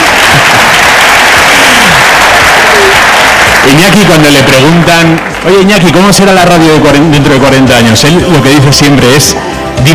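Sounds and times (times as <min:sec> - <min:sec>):
audience applause: 0:00.0 - 0:06.3
speech: 0:03.8 - 0:09.9.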